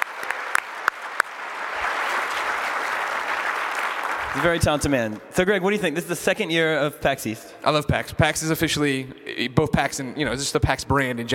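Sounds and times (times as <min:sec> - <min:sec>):
audience applause: 0:00.0 - 0:05.0
speech: 0:04.4 - 0:11.3.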